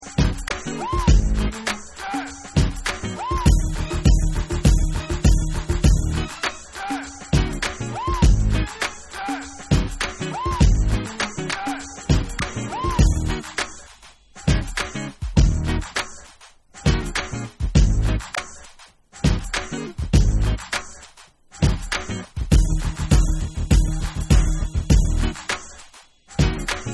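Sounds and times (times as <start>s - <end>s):
instrumental music: 0.0s - 26.9s.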